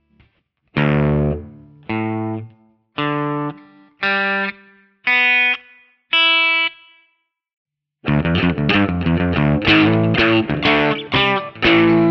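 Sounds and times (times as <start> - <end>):
guitar in Drop D tuning: 0.8 - 7.0, 8.1 - 12.1.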